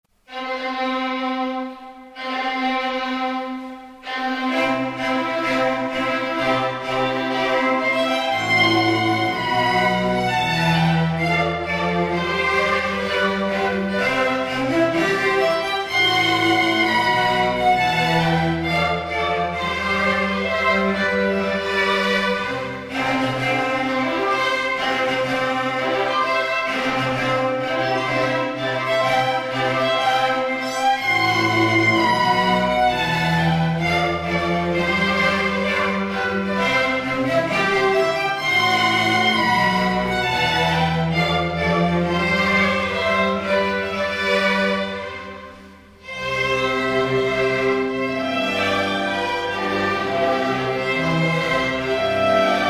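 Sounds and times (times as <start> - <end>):
string ensemble: 0.1 - 52.6.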